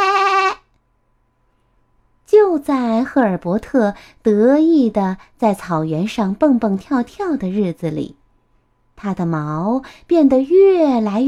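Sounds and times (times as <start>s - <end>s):
sheep bleating: 0.0s - 0.6s
speech: 2.6s - 8.2s, 9.0s - 11.2s.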